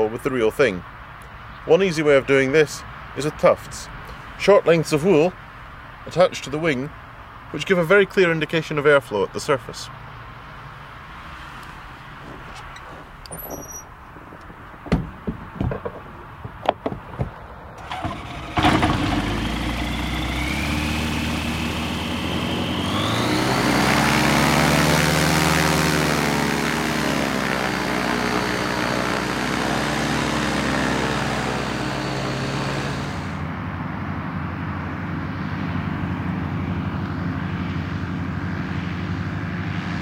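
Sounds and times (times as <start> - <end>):
speech: 0.1 - 0.9, 1.6 - 5.4, 6.0 - 10.0
Dimona motor glider onboard engine starting and droning: 11.0 - 39.9
clunks and knocks: 12.2 - 17.6.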